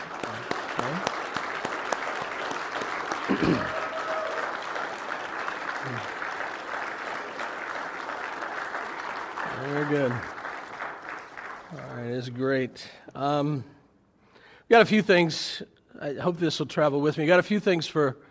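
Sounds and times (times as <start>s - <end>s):
audience applause for mothers: 0.0s - 12.4s
speech: 3.3s - 3.8s, 12.4s - 13.8s, 14.7s - 18.2s.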